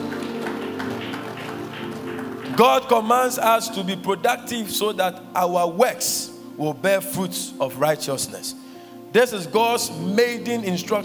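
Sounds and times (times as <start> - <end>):
audience clapping: 0.0 - 3.4
speech: 2.6 - 11.0.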